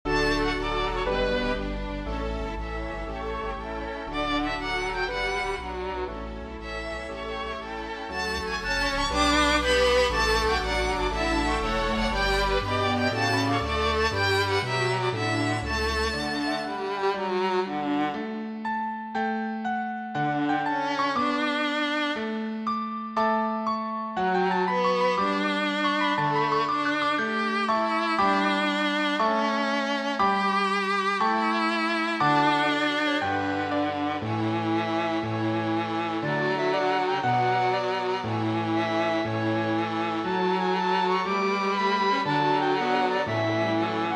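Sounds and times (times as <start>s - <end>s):
cello: 0.0s - 44.1s.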